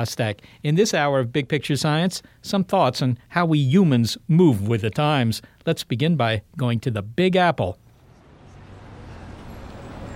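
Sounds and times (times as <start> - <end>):
speech: 0.0 - 7.8
cars going by on 8th Avenue in New York City: 7.9 - 10.1.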